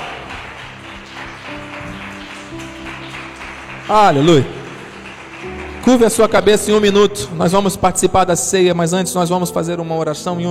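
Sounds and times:
crowd applauding: 0.0s - 8.3s
sustained musical tones: 0.2s - 10.5s
speech: 3.9s - 4.6s, 5.8s - 10.5s.

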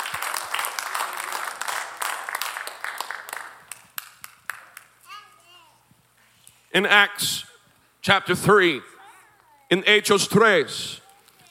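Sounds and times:
audience clapping hands: 0.0s - 5.2s
speech: 6.8s - 8.9s, 9.7s - 11.4s.

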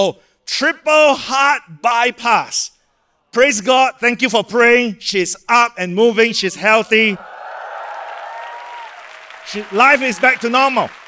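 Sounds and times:
speech: 0.0s - 2.7s, 3.3s - 7.3s, 9.5s - 11.0s
audience applause: 7.2s - 11.0s.

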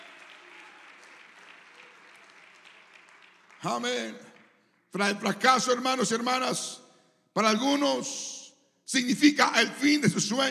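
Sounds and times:
audience applause: 0.0s - 4.5s
speech: 3.6s - 4.3s, 4.9s - 6.8s, 7.4s - 10.4s.

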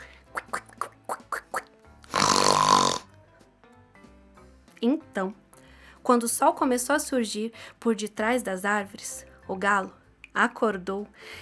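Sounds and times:
person imitating pigs oinking: 0.3s - 3.1s
speech: 4.8s - 5.4s, 6.0s - 11.4s.

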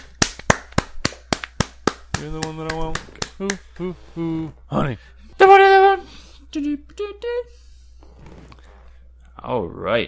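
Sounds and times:
clapping applause: 0.0s - 3.9s
speech: 2.2s - 8.5s, 9.4s - 10.0s.

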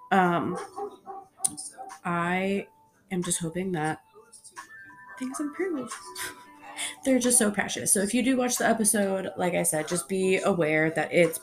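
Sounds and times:
speech: 0.1s - 6.4s, 7.0s - 11.4s
dog barking: 0.5s - 2.0s.

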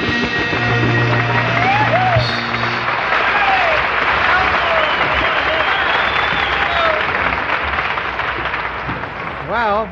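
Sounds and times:
crowd applauding: 0.2s - 9.9s
crowd whooping: 0.5s - 7.6s.

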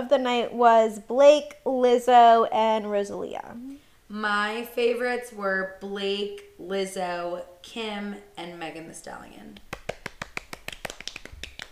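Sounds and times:
speech: 0.1s - 9.7s
sharp one-handed claps: 9.6s - 11.7s.

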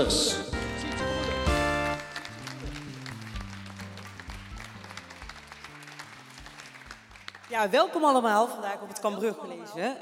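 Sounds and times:
speech: 0.0s - 0.4s, 7.6s - 9.9s
upbeat music with stepping tonal notes: 0.0s - 8.3s
audience applause: 0.8s - 8.0s.

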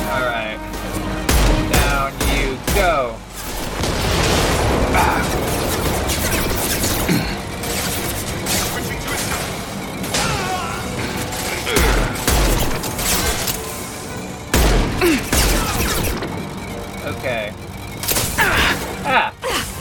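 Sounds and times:
busy mechanical video game sounds: 0.8s - 19.7s
gunfire in a video game: 1.3s - 13.6s, 14.5s - 16.6s.

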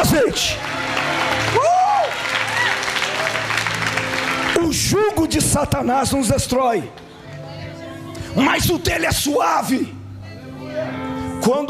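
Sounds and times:
audience applause: 0.0s - 5.2s
speech: 0.4s - 0.7s, 4.9s - 7.1s, 8.4s - 10.0s, 10.8s - 11.6s.

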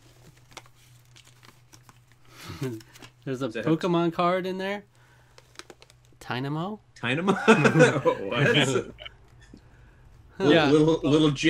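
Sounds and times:
manual pulled out of a Sonic Unleashed game case: 0.0s - 3.3s, 5.3s - 6.2s
speech: 2.6s - 4.9s, 6.3s - 9.0s, 10.4s - 11.4s
laughter: 7.3s - 9.1s.

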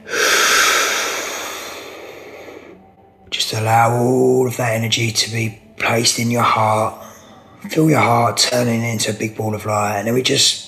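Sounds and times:
deep inhalation during a guided meditation: 0.0s - 3.0s
speech: 3.6s - 10.6s.

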